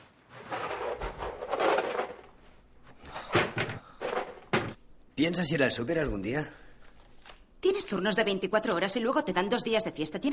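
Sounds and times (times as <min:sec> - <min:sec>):
rustling and clattering: 0:00.2 - 0:04.8
wooden cupboard doors opening and closing: 0:03.3 - 0:04.8
speech: 0:05.2 - 0:06.6, 0:07.9 - 0:10.3.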